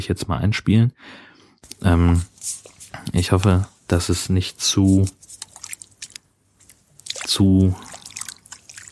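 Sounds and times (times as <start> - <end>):
speech: 0.0 - 5.3, 7.3 - 7.9
footsteps squelching through tidal mudflat: 4.9 - 8.9.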